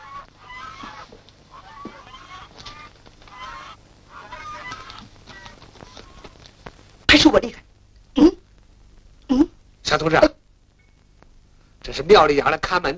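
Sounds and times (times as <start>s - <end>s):
geese honking: 0.0s - 6.5s
speech: 7.2s - 7.6s, 9.9s - 10.3s, 12.0s - 12.9s.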